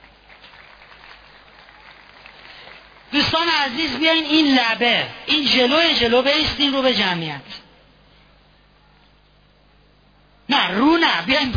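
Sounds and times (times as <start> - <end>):
audience applauding: 0.0 - 3.9
speech: 3.3 - 7.6, 10.5 - 11.5.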